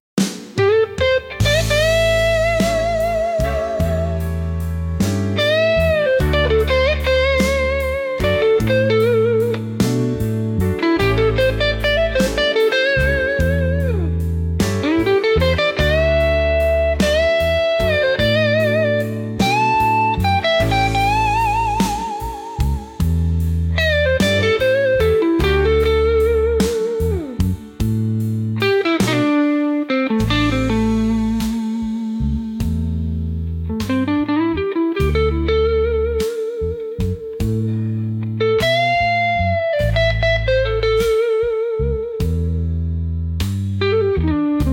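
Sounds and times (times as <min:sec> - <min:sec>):
instrumental blues rock: 0:00.2 - 0:44.7.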